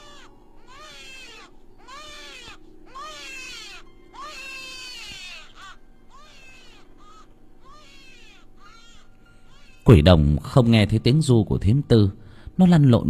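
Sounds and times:
newborn baby crying piercingly: 0.0s - 10.1s
speech: 9.9s - 13.0s.

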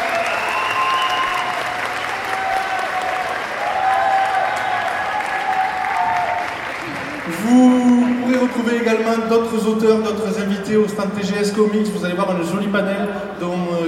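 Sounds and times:
audience applause for three musicians at TGS 2016 inauguration: 0.0s - 9.6s
speech: 8.7s - 13.8s.

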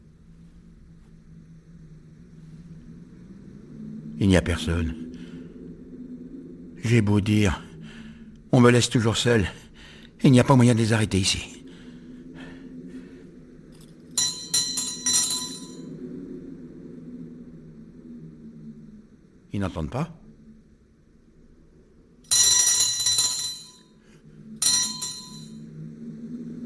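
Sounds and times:
low steady hum: 0.0s - 26.6s
speech: 4.2s - 5.0s, 6.8s - 7.7s, 8.5s - 9.6s, 10.2s - 11.6s, 19.6s - 20.2s
small hand bell ringing: 14.2s - 15.8s, 22.3s - 23.8s, 24.6s - 25.5s.

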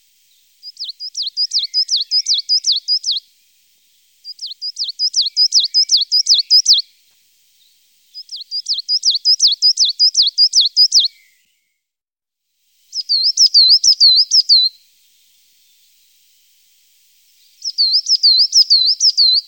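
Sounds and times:
coal tit singing: 0.0s - 3.3s, 4.2s - 6.8s, 8.1s - 11.2s, 12.9s - 15.9s, 17.3s - 19.4s.

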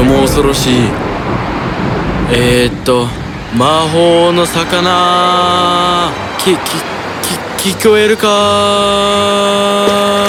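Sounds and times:
thunder rumbling from the clouds surrounding the sea: 0.0s - 3.6s
stormy sea waves roaring: 0.0s - 10.2s
speech: 0.2s - 1.1s, 2.3s - 10.2s.

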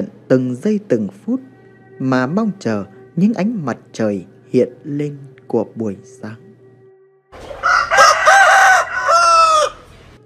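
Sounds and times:
speech: 0.0s - 6.4s
rooster crowing at dawn in a village: 7.4s - 9.9s.

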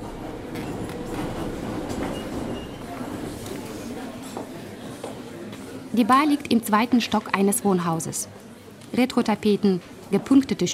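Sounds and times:
Minsk metro train riding: 0.0s - 3.9s
speech: 6.0s - 10.7s.

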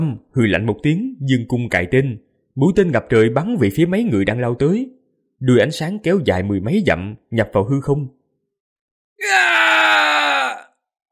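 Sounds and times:
speech: 0.0s - 8.2s, 9.2s - 10.7s
man screaming in pain: 9.2s - 10.8s.

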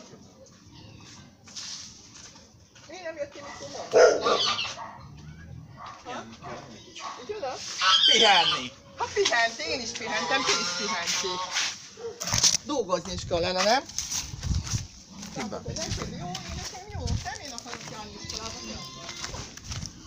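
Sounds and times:
speech: 3.1s - 5.0s, 6.0s - 14.1s, 15.4s - 19.4s
dog barking: 3.4s - 7.4s, 12.0s - 12.3s.

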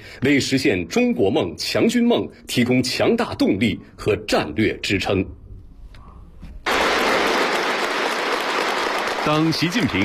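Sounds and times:
speech: 0.2s - 5.4s, 9.3s - 10.0s
whole hall applauding at a military delegation meeting: 6.7s - 10.0s.

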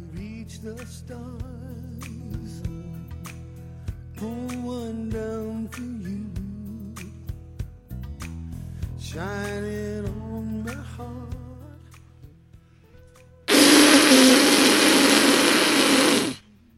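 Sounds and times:
loud buzzy raspberry blown with the lips: 13.5s - 16.4s.

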